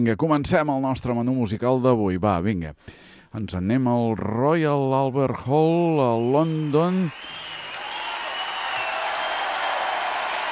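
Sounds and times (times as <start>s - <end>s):
speech: 0.0s - 7.4s
concert audience applauding at the Royal Albert Hall in London: 6.0s - 10.4s.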